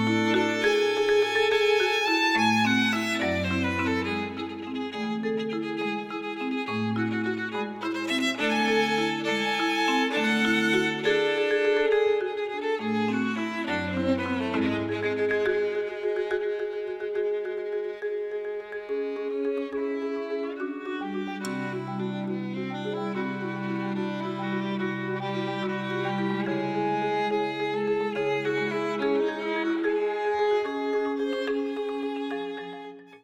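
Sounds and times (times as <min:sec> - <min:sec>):
marimba: 0:00.0 - 0:33.2
violin: 0:00.0 - 0:33.2.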